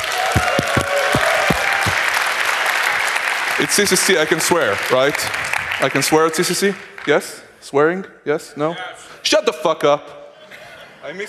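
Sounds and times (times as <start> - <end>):
audience applause: 0.0 - 6.8
louder low thumps: 0.3 - 2.1
speech: 3.6 - 10.2, 11.0 - 11.2.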